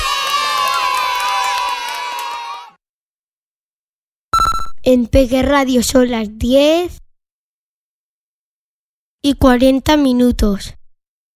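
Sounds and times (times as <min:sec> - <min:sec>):
children applauding and cheering: 0:00.0 - 0:02.8
speech: 0:04.9 - 0:07.0, 0:09.2 - 0:10.8.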